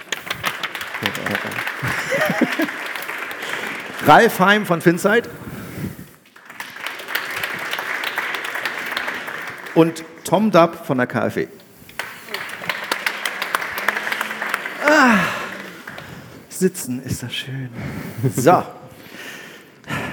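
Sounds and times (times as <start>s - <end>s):
audience applause: 0.0s - 5.2s, 6.2s - 10.2s, 12.0s - 16.5s
laughter: 0.9s - 3.2s, 12.2s - 16.0s
speech: 1.0s - 2.9s, 4.0s - 5.5s, 9.8s - 11.6s, 16.6s - 18.8s.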